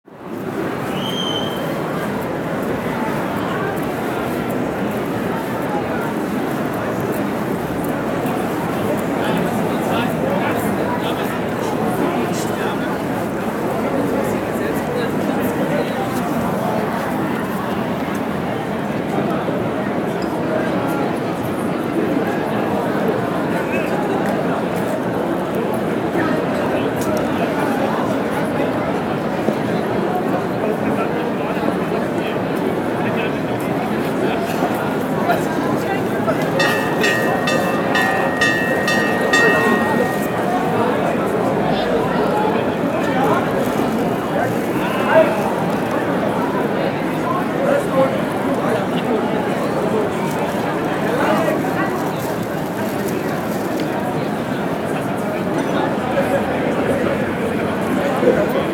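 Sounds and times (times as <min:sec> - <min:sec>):
Christmas market ambience: 0:00.0 - 0:58.7.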